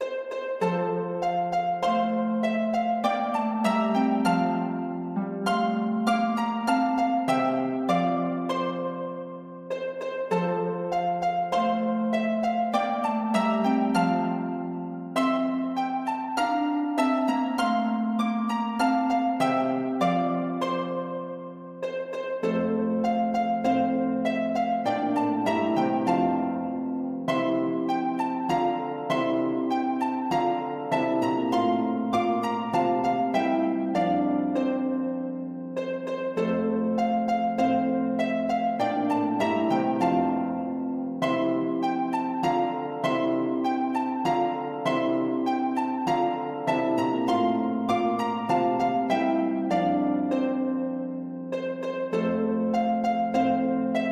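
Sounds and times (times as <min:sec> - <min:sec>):
harp version of a Christmas carol: 0:00.0 - 0:54.1.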